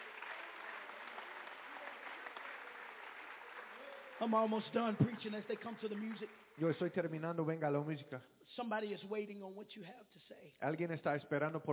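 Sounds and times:
audience clapping hands: 0:00.0 - 0:07.2
speech: 0:04.2 - 0:11.7.

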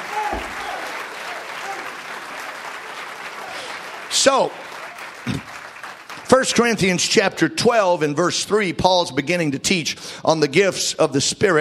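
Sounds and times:
audience clapping hands: 0:00.0 - 0:07.4
speech: 0:04.2 - 0:05.4, 0:06.3 - 0:11.6.

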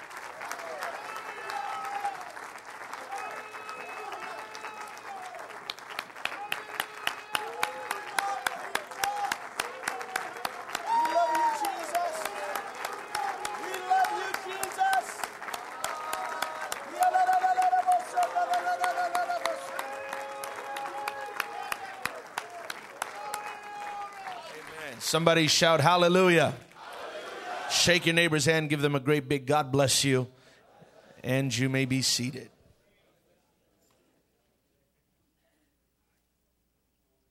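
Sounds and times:
audience applause: 0:00.0 - 0:27.7
scattered cheers and voices: 0:00.6 - 0:02.3, 0:06.2 - 0:25.0
speech: 0:25.1 - 0:26.6, 0:27.8 - 0:30.4, 0:31.2 - 0:32.6.

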